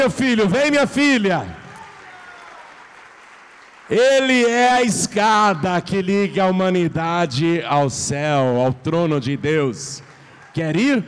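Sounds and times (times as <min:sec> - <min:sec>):
speech: 0:00.0 - 0:01.6, 0:03.9 - 0:11.0
church audience applauding: 0:01.2 - 0:04.9, 0:09.9 - 0:11.0.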